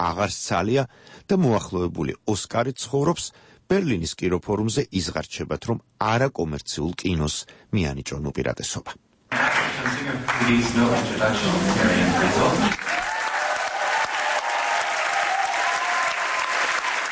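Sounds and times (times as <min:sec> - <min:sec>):
speech: 0:00.0 - 0:13.0
journalists applauding at the Berlinale: 0:09.3 - 0:17.1.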